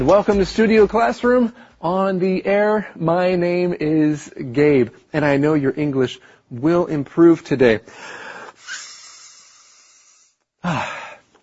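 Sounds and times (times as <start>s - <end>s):
speech: 0.0s - 8.2s, 10.6s - 11.4s
person blowing air into an inflatable travel pillow: 8.6s - 10.8s.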